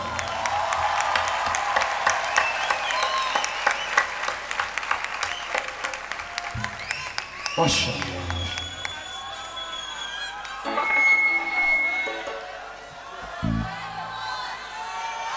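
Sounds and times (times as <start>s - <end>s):
crowd applauding: 0.0s - 15.3s
speech: 7.6s - 8.2s.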